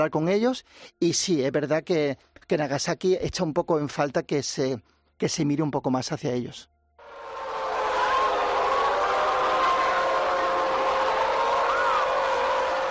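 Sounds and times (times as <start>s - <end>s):
speech: 0.0s - 6.7s
air raid alarm siren: 7.0s - 12.9s.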